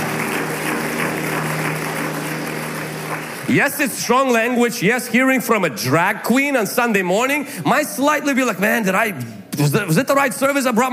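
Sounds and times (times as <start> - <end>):
audience applause: 0.0 - 4.7
speech: 3.5 - 10.9.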